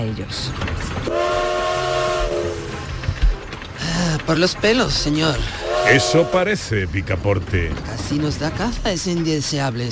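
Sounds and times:
speech: 0.0 - 1.5, 4.3 - 9.9
departing train rumbling: 0.0 - 9.9
steam train whistle: 1.1 - 2.8, 5.6 - 6.5.

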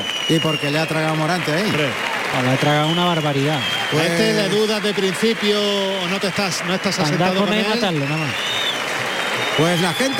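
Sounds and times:
bullring crowd applauding: 0.0 - 10.1
speech: 0.3 - 8.6, 9.6 - 10.1
bullring crowd disapproval: 3.8 - 4.8.

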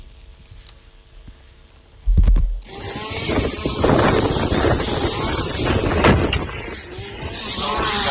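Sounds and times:
strong wind gusting up to 70 km/h at a forest fire in Andalucía: 2.7 - 8.0.

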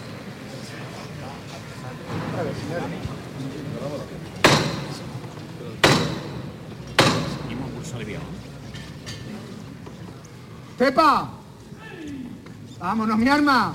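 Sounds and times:
murmur of people talking: 0.0 - 13.7
speech: 2.6 - 4.2, 7.9 - 8.5, 10.8 - 11.4, 12.8 - 13.7
capataz's ceremonial hammer knocks: 4.4 - 5.2, 5.8 - 7.6.

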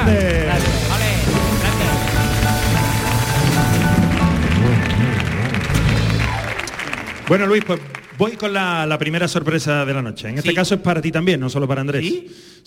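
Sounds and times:
audience applause: 0.0 - 9.1
speech: 7.3 - 12.6.

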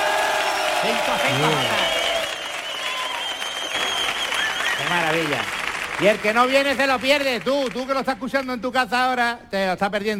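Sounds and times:
studio audience cheering and whooping: 0.0 - 5.8
studio audience applauding: 0.0 - 8.5
speech: 0.8 - 2.0, 4.9 - 10.1.

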